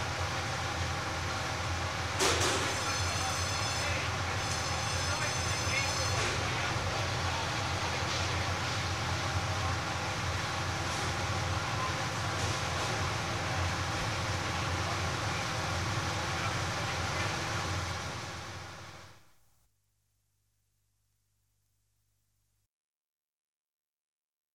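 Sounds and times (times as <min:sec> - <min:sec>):
factory workshop: 0:00.0 - 0:19.2.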